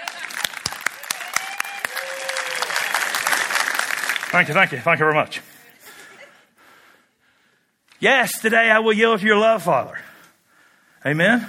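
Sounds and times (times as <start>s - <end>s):
audience clapping big clap: 0.0s - 5.2s
speech: 4.3s - 5.5s, 8.0s - 10.0s, 11.0s - 11.4s.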